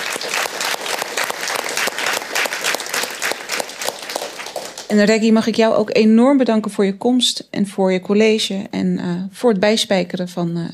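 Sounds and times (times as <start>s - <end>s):
audience applause: 0.0s - 5.1s
speech: 4.9s - 10.7s.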